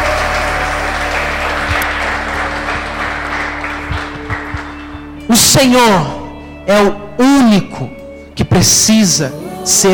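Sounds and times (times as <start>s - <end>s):
audience applauding: 0.0s - 5.2s
speech: 5.6s - 9.9s.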